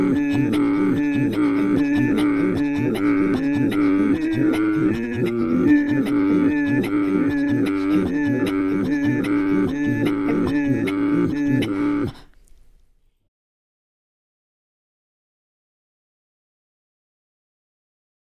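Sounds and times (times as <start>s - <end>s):
Inuit throat singing: 0.0s - 13.1s.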